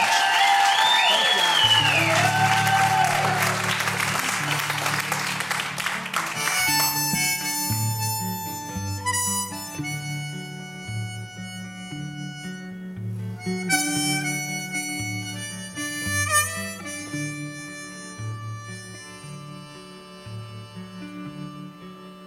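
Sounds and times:
audience applauding to welcome two performers: 0:00.0 - 0:07.1
instrumental music: 0:01.6 - 0:22.2.

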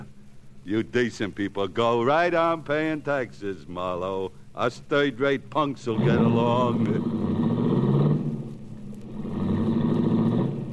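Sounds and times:
speech: 0:00.7 - 0:07.2
baby blue convertible car engine pulling away into traffic: 0:05.9 - 0:10.7.

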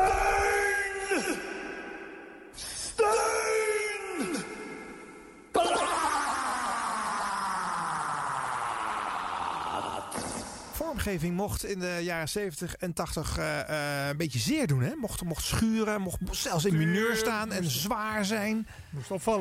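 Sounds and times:
radio show jingle processed vocal sounds: 0:00.0 - 0:10.8
speech: 0:11.0 - 0:19.4.

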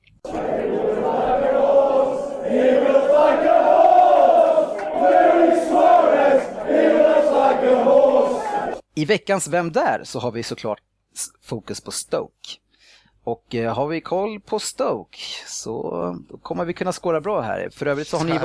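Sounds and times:
football fans chanting: 0:00.2 - 0:08.8
speech: 0:09.0 - 0:12.6, 0:13.2 - 0:18.4.

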